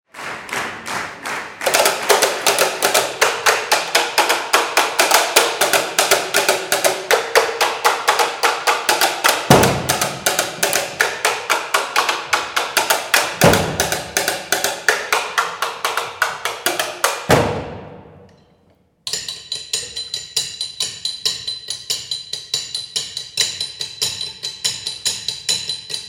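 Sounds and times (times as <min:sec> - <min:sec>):
drummers playing an encore: 0:01.2 - 0:18.4.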